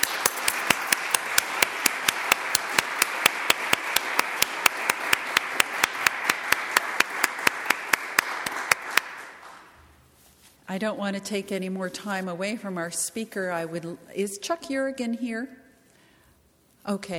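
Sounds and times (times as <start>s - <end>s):
audience applause: 0.0s - 9.7s
speech: 10.8s - 15.6s, 16.9s - 17.1s.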